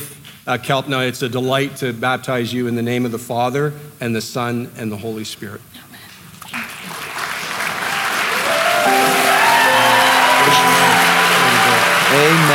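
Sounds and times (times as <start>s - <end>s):
speech: 0.5s - 5.8s
audience applauding: 6.4s - 12.5s.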